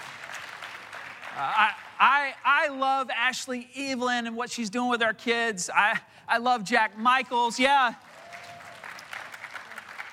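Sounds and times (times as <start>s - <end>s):
audience applause: 0.0s - 2.2s, 8.0s - 10.1s
speech: 1.4s - 8.1s.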